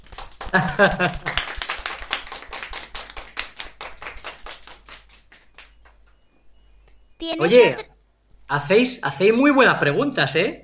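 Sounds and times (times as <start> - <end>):
audience applause: 0.3 - 4.9
speech: 0.5 - 1.3, 7.3 - 7.9, 8.5 - 10.6.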